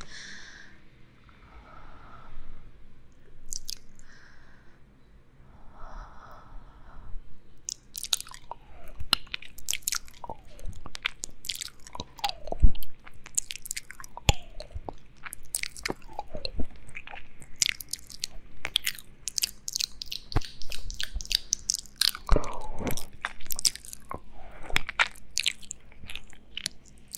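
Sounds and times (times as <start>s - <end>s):
ear eating sounds: 3.4s - 4.0s, 7.6s - 27.1s
mouth sounds: 3.4s - 4.0s, 7.6s - 27.1s.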